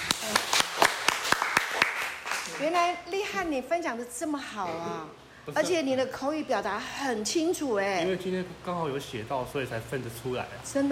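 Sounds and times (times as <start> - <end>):
applause: 0.0 - 2.8
speech: 2.6 - 10.9.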